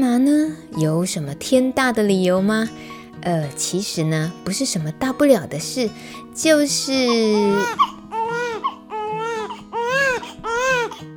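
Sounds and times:
speech: 0:00.1 - 0:08.0
baby crying: 0:06.5 - 0:11.1.

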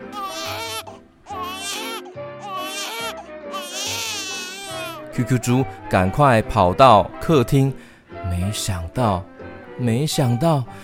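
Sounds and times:
baby wailing loudly: 0:00.0 - 0:05.0
speech: 0:05.2 - 0:10.8.

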